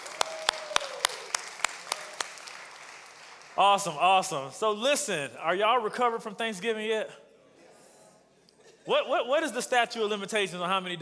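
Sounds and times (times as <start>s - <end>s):
audience clapping to welcome online viewers watching on Facebook: 0.0s - 4.4s
speech: 3.6s - 7.2s, 8.8s - 11.0s.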